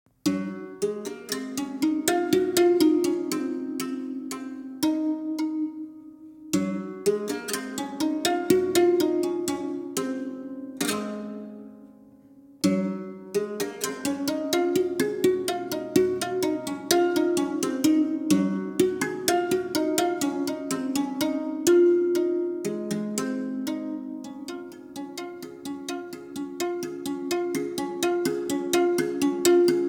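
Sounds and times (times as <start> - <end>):
berimbau sextet playing: 0.3 - 11.7, 12.6 - 29.8.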